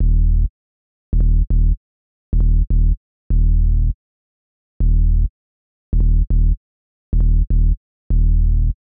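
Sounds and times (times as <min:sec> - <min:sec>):
bass: 0:00.0 - 0:00.5, 0:01.1 - 0:04.0, 0:04.8 - 0:05.3, 0:05.9 - 0:08.8.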